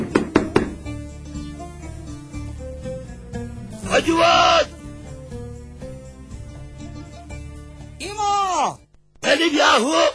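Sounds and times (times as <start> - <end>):
firm knocks on a wooden door: 0.0 - 0.9
speech: 4.0 - 4.7, 9.4 - 10.1.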